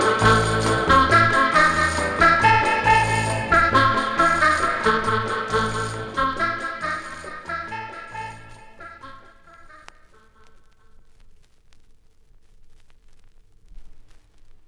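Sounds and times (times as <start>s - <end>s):
waltz music: 0.0s - 9.4s.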